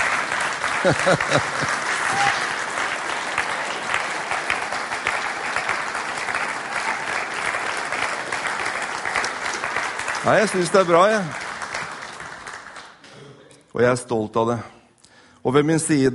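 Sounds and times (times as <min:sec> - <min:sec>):
audience applauding: 0:00.0 - 0:13.1
laughter: 0:00.6 - 0:02.5
speech: 0:00.8 - 0:02.3, 0:10.3 - 0:11.4, 0:13.8 - 0:14.8, 0:15.4 - 0:16.1.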